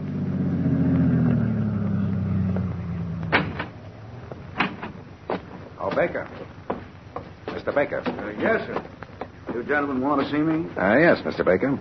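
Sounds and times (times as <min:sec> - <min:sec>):
car engine humming as the vehicle rolls to a stop: 0:00.0 - 0:05.3
car door slams: 0:03.2 - 0:03.8
speech: 0:06.0 - 0:06.6, 0:07.7 - 0:09.0, 0:09.6 - 0:11.7.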